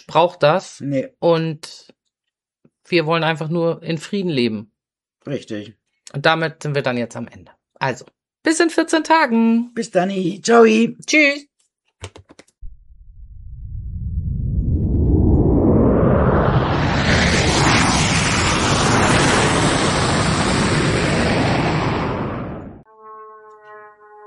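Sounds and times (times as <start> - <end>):
speech: 0.0 - 2.0, 2.9 - 12.4
loud airplane flying overhead: 15.0 - 22.9.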